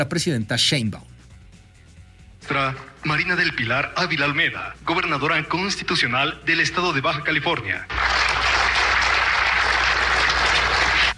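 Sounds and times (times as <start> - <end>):
speech: 0.0 - 1.1, 2.4 - 8.1
crowd applause at a public event: 2.4 - 3.3, 7.9 - 11.1.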